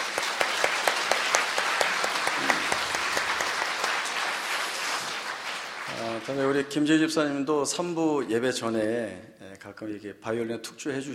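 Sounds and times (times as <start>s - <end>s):
group applause for oboe performers: 0.0s - 7.1s
speech: 6.3s - 11.1s.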